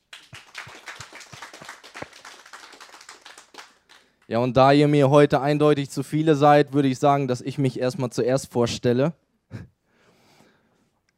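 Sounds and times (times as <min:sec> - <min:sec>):
audience applauding: 0:00.0 - 0:04.3
speech: 0:04.3 - 0:09.7.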